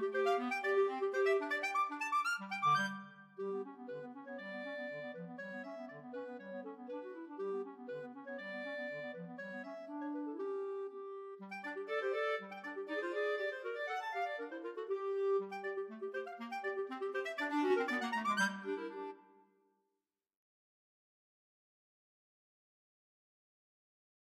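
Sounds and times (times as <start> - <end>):
two clarinets playing a divertimento: 0.0 - 19.3.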